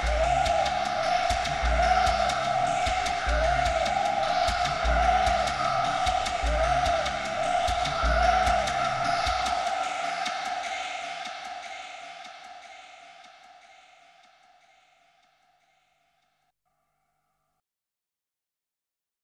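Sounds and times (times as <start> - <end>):
weird bird call at a carnival: 0.0 - 14.0.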